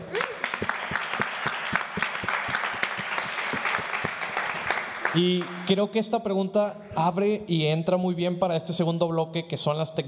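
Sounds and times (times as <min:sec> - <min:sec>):
audience applause: 0:00.0 - 0:05.7
speech: 0:05.2 - 0:10.0.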